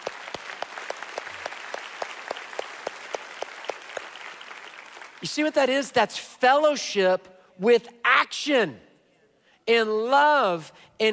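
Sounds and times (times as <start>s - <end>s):
audience clapping: 0.0s - 5.6s
speech: 5.2s - 8.9s, 9.6s - 11.1s.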